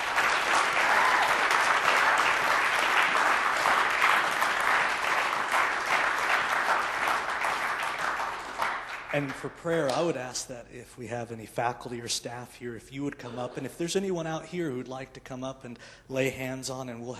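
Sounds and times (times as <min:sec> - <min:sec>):
crowd applauding: 0:00.0 - 0:09.6
speech: 0:09.2 - 0:17.1.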